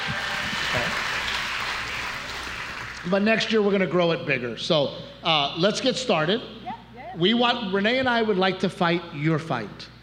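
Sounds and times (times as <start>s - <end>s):
audience applause: 0.0s - 3.3s
speech: 3.0s - 6.6s, 7.2s - 9.9s.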